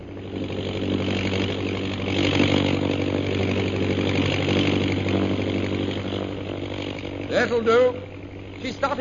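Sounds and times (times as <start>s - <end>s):
airplane engine droning: 0.0s - 8.9s
speech: 7.4s - 8.9s.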